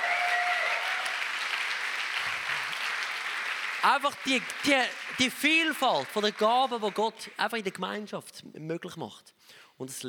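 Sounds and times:
audience applause: 0.0s - 7.3s
speech: 3.8s - 10.0s.

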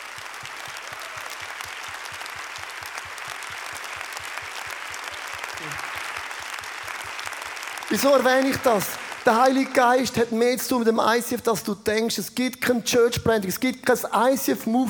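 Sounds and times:
audience applause: 0.0s - 10.3s
speech: 7.9s - 14.8s.

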